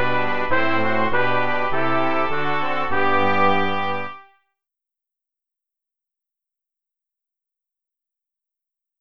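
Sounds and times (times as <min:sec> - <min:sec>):
brass playing a hymn: 0:00.0 - 0:04.4.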